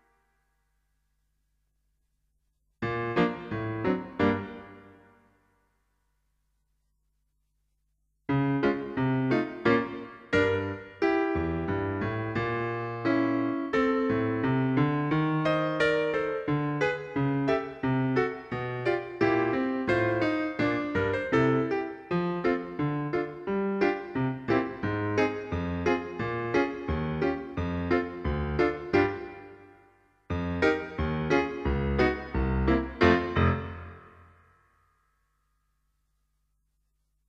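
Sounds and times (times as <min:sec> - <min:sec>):
piano accompaniment: 0:02.8 - 0:05.2, 0:08.3 - 0:34.4.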